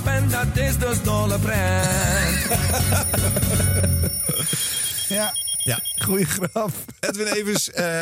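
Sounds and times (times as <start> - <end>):
speech: 0.1 - 8.0
alarm clock ringing with metallic jangle: 1.9 - 6.9
laughter: 2.0 - 5.1, 6.1 - 8.0.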